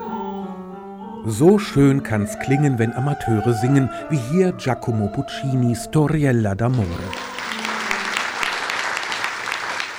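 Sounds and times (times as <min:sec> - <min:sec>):
speech: 0:01.2 - 0:07.4
audience applauding after a sung performance: 0:06.7 - 0:09.9.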